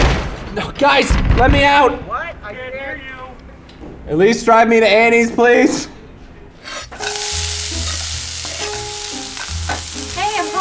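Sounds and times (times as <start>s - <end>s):
speech: 0.5s - 3.1s, 4.1s - 6.0s
bacon and mussels frying in a pan: 6.8s - 10.5s.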